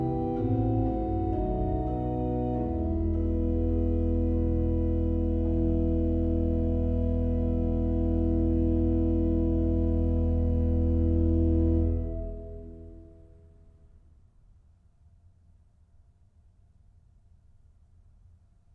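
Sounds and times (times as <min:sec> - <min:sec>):
organ chorale prelude: 0:00.0 - 0:13.5.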